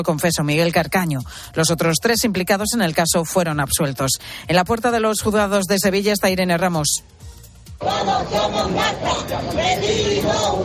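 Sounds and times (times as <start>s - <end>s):
speech: 0.0s - 10.6s
neighbours shouting together outside a courthouse: 7.8s - 10.6s.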